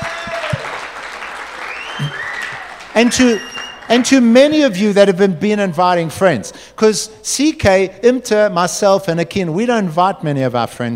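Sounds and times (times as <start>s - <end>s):
audience applause: 0.0s - 4.2s
speech: 3.0s - 10.9s.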